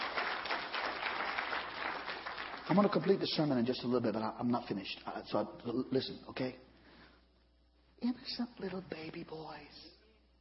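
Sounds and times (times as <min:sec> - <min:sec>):
audience clapping: 0:00.0 - 0:03.8
speech: 0:02.7 - 0:06.7, 0:08.0 - 0:10.0.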